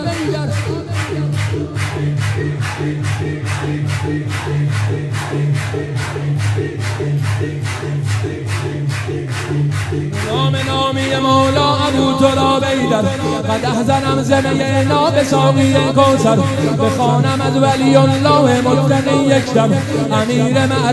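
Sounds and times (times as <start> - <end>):
crowd clapping in rhythm at a religious gathering praising Imam Ali: 0.0 - 20.9
speech: 2.8 - 20.9.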